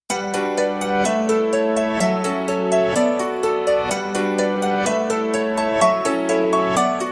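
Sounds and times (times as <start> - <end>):
melody: 0.1 - 7.1.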